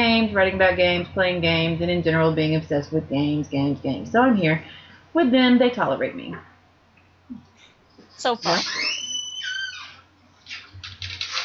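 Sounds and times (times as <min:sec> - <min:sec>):
speech: 0:00.2 - 0:06.5, 0:08.2 - 0:09.0
creaking door: 0:08.4 - 0:11.4.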